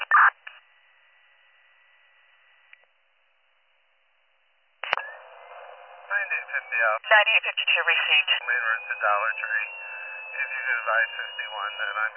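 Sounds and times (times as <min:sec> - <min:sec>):
radio dispatch alert tone: 0:04.8 - 0:12.1
speech: 0:06.5 - 0:12.1.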